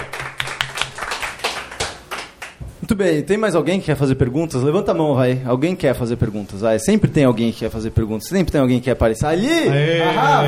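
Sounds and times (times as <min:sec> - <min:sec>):
audience hand clapping: 0:00.0 - 0:02.6
speech: 0:02.9 - 0:10.4.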